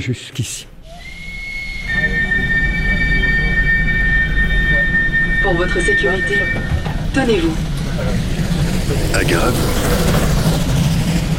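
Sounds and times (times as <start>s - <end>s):
speech: 0.0s - 0.8s, 5.4s - 8.2s, 8.9s - 10.3s
train rumbling on rails: 0.7s - 11.3s
metallic wheel squeal: 0.8s - 8.3s.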